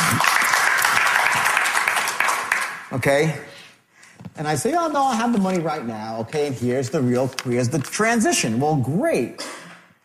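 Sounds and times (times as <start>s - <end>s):
audience clapping: 0.0s - 3.2s
speech: 2.9s - 3.5s, 4.3s - 9.6s.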